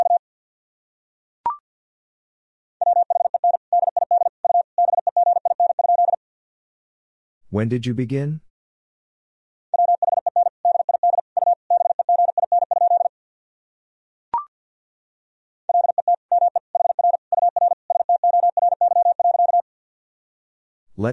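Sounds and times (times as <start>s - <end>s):
morse code tone at about 50 words per minute: 2.8s - 6.2s, 9.8s - 13.1s, 15.7s - 19.6s
speech: 7.5s - 8.4s.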